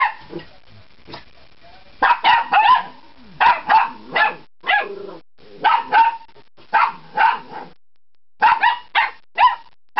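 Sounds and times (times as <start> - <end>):
bark: 0.0 - 0.4, 2.0 - 5.0, 5.6 - 7.8, 8.4 - 9.9.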